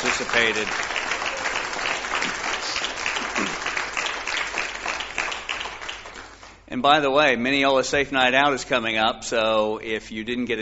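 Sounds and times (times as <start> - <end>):
audience applause: 0.0 - 6.6
speech: 0.2 - 1.0, 6.7 - 10.6.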